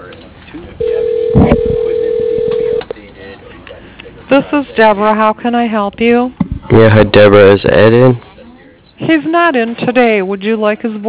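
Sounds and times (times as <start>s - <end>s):
steady electronic tone on a company's telephone line on hold: 0.8s - 2.9s
speech: 4.4s - 8.3s, 9.0s - 11.0s.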